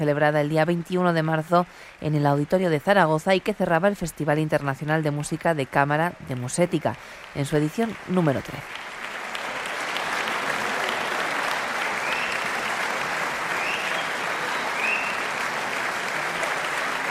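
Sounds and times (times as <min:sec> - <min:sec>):
speech: 0:00.0 - 0:08.8
concert audience applause: 0:04.9 - 0:17.0.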